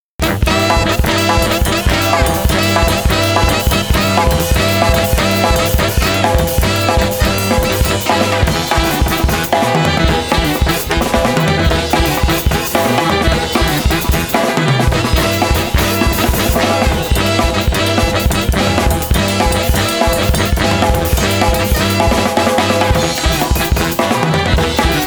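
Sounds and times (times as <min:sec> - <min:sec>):
saxophone: 0:00.2 - 0:25.0.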